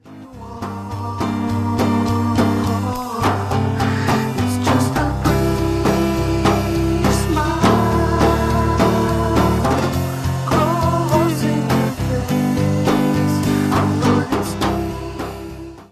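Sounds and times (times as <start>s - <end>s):
chorus singing: 0.0s - 15.9s.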